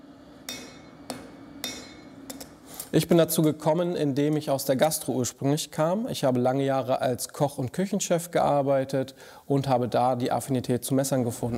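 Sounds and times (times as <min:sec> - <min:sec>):
knife maker hammering and forging steel in his workshop in Hannover-Döhren: 0:00.4 - 0:03.6
speech: 0:02.9 - 0:11.5.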